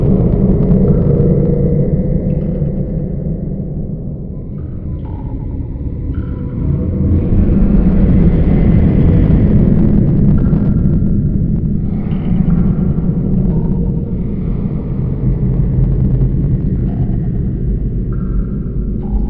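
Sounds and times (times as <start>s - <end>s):
cave ambience: 0.0s - 19.2s.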